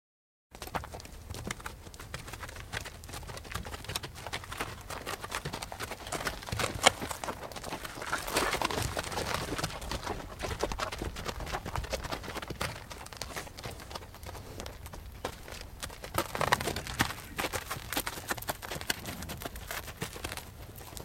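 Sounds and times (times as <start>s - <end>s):
horses shuffling and stepping on dirt: 0.5s - 21.0s.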